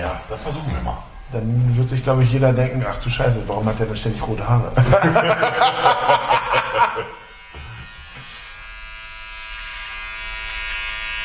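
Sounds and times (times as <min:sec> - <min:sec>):
speech: 0:00.0 - 0:07.2
laughter: 0:04.8 - 0:07.2
electric trimmer shaving hair on nose: 0:06.0 - 0:11.2.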